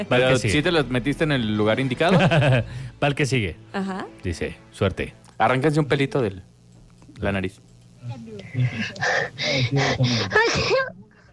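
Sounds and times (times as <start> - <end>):
speech: 0.0 - 6.5, 7.2 - 11.0
laughter: 2.0 - 2.8
breathy gasping inhales: 8.4 - 11.3.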